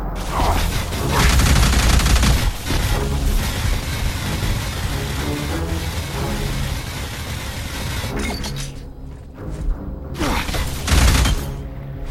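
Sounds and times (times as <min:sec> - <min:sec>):
video game gunfire: 0:00.2 - 0:08.2, 0:10.2 - 0:11.5.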